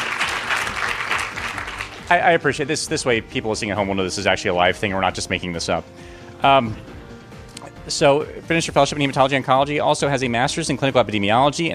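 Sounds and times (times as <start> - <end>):
crowd clapping: 0.0 - 2.2
speech: 2.1 - 6.9, 7.9 - 11.7.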